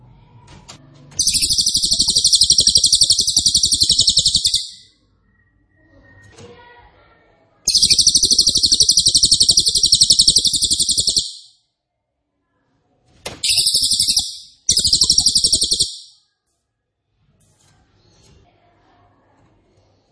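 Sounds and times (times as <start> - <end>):
song: 1.2 - 4.8, 7.7 - 11.5, 13.5 - 16.1.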